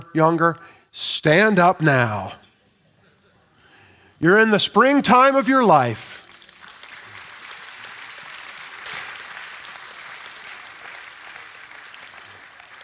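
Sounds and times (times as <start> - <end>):
speech: 0.1 - 2.4, 4.2 - 6.2
audience clapping: 6.1 - 12.8.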